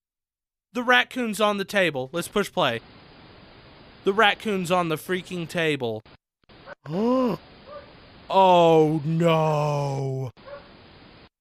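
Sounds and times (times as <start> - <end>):
speech: 0.7 - 3.0, 4.0 - 6.2, 6.8 - 7.5, 8.3 - 10.4
dog barking at raccoon: 7.7 - 7.9, 10.4 - 10.7.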